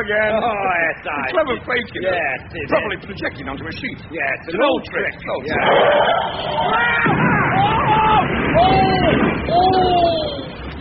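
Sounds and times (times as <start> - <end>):
speech: 0.0 - 10.4
people crying and yelling: 5.4 - 10.6
bus crashing into a crowd: 5.5 - 10.7.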